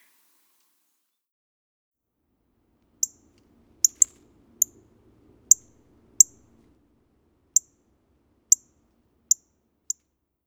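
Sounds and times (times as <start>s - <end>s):
Northern cardinal metallic chip calls: 3.0s - 6.8s, 7.4s - 10.0s.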